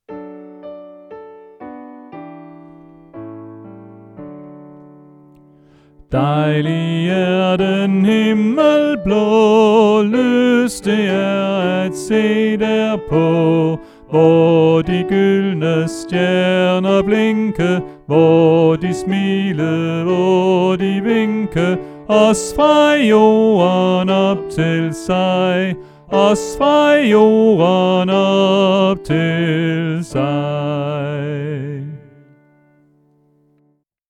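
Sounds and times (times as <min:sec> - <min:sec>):
soprano voice: 0:06.1 - 0:32.4.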